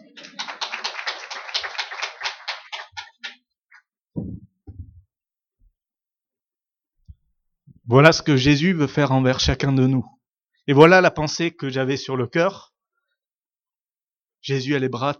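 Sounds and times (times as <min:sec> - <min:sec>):
audience applause: 0:00.0 - 0:03.4
speech: 0:07.9 - 0:12.7, 0:14.4 - 0:15.1.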